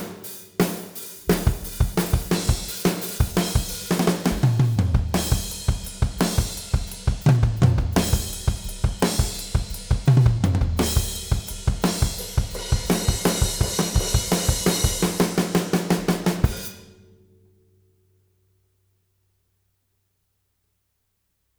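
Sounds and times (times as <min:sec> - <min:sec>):
drums: 0:00.0 - 0:17.0.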